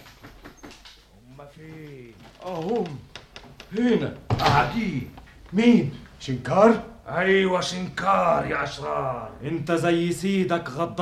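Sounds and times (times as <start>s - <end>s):
palace doors opened by a chamberlain, radio drama effect: 0.0s - 1.1s, 1.9s - 5.1s
speech: 1.6s - 3.1s, 3.7s - 10.9s.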